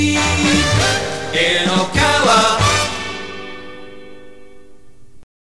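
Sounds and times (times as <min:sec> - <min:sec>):
jingle: 0:00.1 - 0:04.3.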